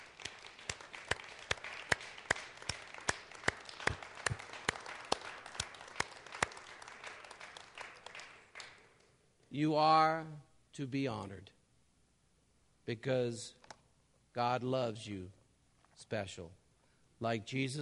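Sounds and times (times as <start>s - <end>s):
audience applause for mothers: 0.0s - 8.8s
speech: 9.5s - 11.6s, 12.9s - 13.6s, 14.4s - 15.4s, 16.0s - 16.6s, 17.2s - 17.8s.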